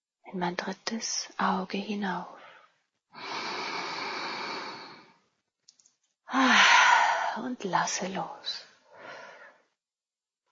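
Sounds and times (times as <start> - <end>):
speech: 0.3 - 2.4, 6.3 - 6.6, 7.4 - 8.7
deep breath during a guided meditation: 2.4 - 5.2, 6.3 - 7.4, 8.8 - 9.8
faint clicks: 5.6 - 6.1.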